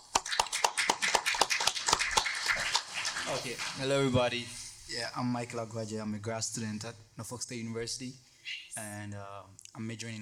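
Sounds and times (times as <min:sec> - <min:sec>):
audience clapping: 0:00.0 - 0:04.0
speech: 0:03.3 - 0:10.2.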